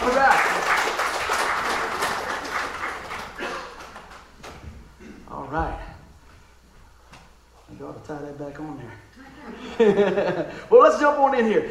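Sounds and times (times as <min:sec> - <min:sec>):
crowd hand clapping: 0:00.0 - 0:04.6
laughter: 0:09.2 - 0:10.7
speech: 0:09.8 - 0:11.6.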